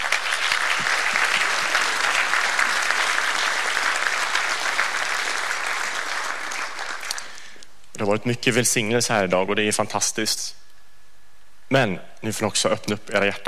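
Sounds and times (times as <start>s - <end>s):
audience applause: 0.0s - 7.5s
speech: 8.0s - 10.6s, 11.7s - 13.4s.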